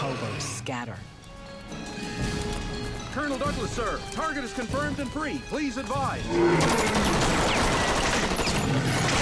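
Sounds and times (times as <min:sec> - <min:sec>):
speech: 0:00.1 - 0:01.1, 0:01.7 - 0:07.9
soldiers firing automatic guns at a giant snake: 0:06.5 - 0:09.2.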